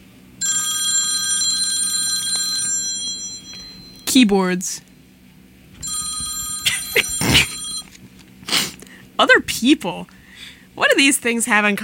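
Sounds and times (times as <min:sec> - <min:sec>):
telephone bell ringing: 0:00.4 - 0:04.2, 0:05.8 - 0:08.0
speech: 0:04.1 - 0:04.9, 0:09.6 - 0:10.2, 0:10.8 - 0:11.8.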